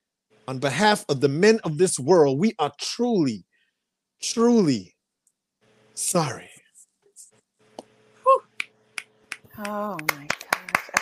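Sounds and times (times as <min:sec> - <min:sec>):
speech: 0:00.5 - 0:03.5, 0:04.2 - 0:04.9, 0:06.0 - 0:06.5, 0:09.6 - 0:10.4
audience finger snapping: 0:08.6 - 0:10.9.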